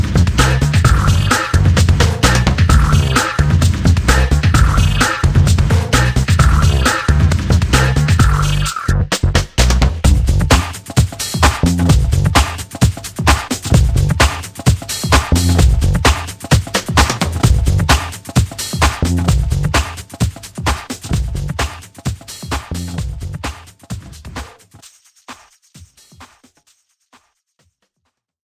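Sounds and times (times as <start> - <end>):
bass: 0.0 - 10.8, 11.4 - 12.6, 13.3 - 14.4, 15.1 - 16.2, 17.0 - 18.0, 18.8 - 19.9, 21.1 - 21.7, 22.5 - 23.5
percussion: 0.0 - 28.4.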